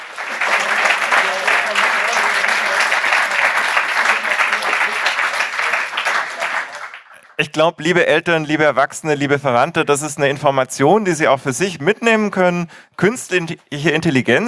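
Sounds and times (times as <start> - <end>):
audience applause: 0.0 - 7.5
speech: 7.4 - 14.4.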